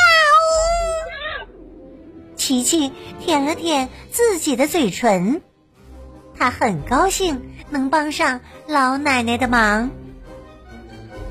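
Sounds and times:
cat meowing: 0.0 - 1.6
speech: 2.5 - 5.5, 6.4 - 10.0.

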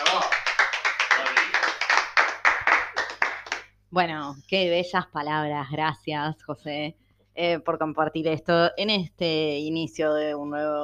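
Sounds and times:
applause: 0.0 - 3.7
speech: 3.9 - 10.8.

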